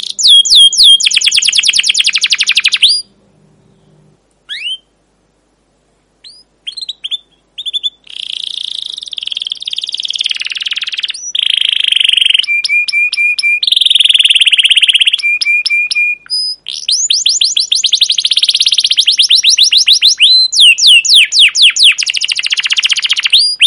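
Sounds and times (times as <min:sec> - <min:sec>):
captive canary chirping song: 0:00.0 - 0:05.0, 0:06.2 - 0:23.6.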